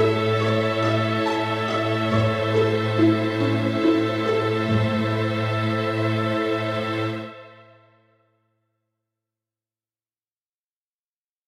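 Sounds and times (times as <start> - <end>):
string concerto second movement: 0.0 - 7.8.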